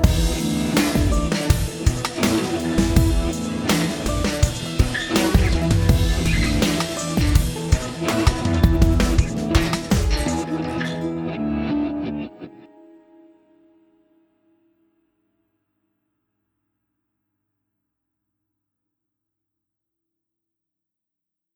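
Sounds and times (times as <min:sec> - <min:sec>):
instrumental drones: 0:00.0 - 0:12.5.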